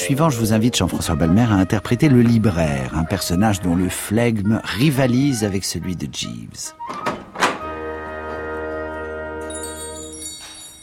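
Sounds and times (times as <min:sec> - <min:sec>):
speech: 0:00.0 - 0:07.1
shop door being pushed open: 0:06.8 - 0:07.8.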